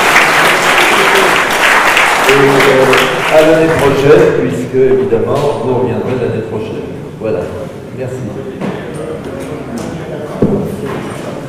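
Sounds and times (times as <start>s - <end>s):
audience applause: 0.0s - 4.2s
speech: 2.3s - 8.8s.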